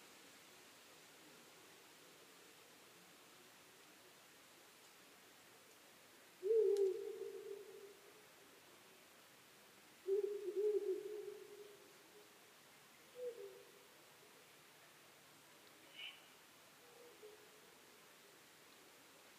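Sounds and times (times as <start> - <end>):
owl hooting: 6.4 - 8.0, 10.0 - 11.9, 13.1 - 13.7, 15.9 - 17.5.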